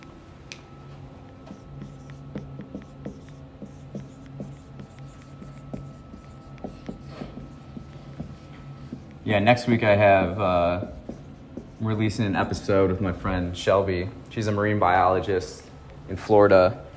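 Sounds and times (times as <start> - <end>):
steady low hum: 0.0 - 16.9
scratchy handwriting strokes at a leadership seminar workshop: 1.4 - 12.7
speech: 9.3 - 11.0, 11.8 - 16.8.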